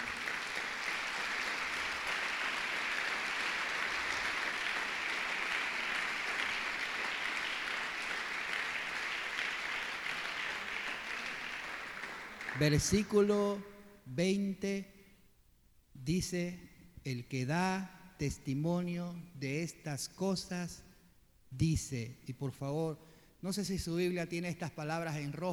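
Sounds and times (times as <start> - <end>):
audience applauding: 0.0 - 13.1
speech: 12.6 - 14.9, 16.0 - 20.9, 21.5 - 25.5.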